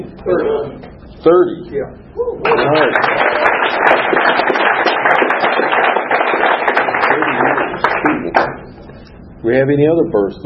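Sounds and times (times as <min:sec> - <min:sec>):
speech: 0:00.0 - 0:04.6, 0:09.4 - 0:10.4
loud applause from a group: 0:02.4 - 0:08.6.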